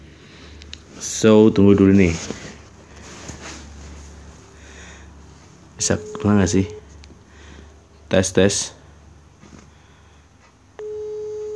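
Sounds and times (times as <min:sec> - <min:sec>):
speech: 0:01.0 - 0:02.4, 0:05.8 - 0:06.8, 0:08.1 - 0:08.8
phone line electronic calling tone: 0:05.8 - 0:06.9, 0:10.8 - 0:11.5.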